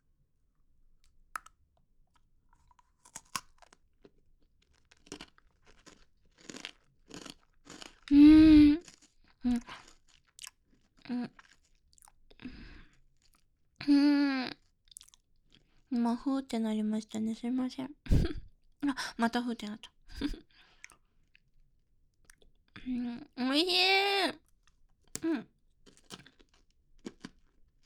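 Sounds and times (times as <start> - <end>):
crunching and chewing Pocky biscuit sticks: 1.0 - 8.1, 8.8 - 13.6, 14.6 - 15.8, 24.4 - 27.8
speech: 16.1 - 18.4, 19.0 - 20.4, 22.9 - 24.4.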